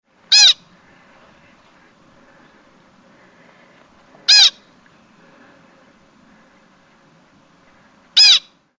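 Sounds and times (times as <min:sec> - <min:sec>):
pika squeaking: 0:00.3 - 0:00.7, 0:04.3 - 0:04.7, 0:08.2 - 0:08.6.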